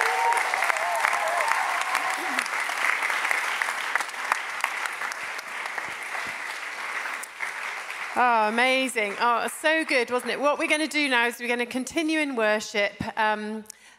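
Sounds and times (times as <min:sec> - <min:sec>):
audience applause: 0:00.0 - 0:09.9
speech: 0:08.2 - 0:13.8.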